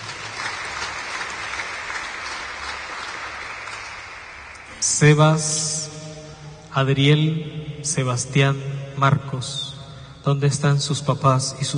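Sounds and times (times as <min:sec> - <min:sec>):
audience clapping hands: 0:00.0 - 0:05.1
speech: 0:05.0 - 0:05.6, 0:06.8 - 0:11.7.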